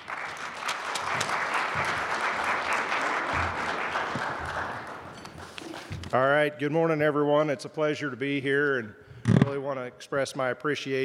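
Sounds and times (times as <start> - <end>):
audience applause: 0.0 - 6.0
speech: 6.1 - 11.0.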